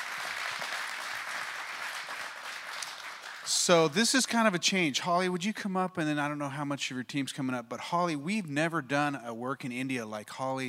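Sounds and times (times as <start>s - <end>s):
audience applause: 0.0s - 3.7s
speech: 3.5s - 10.6s.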